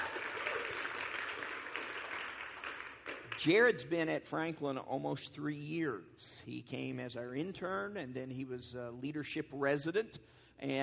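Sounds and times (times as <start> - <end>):
audience applause: 0.0 - 3.6
speech: 3.4 - 10.8.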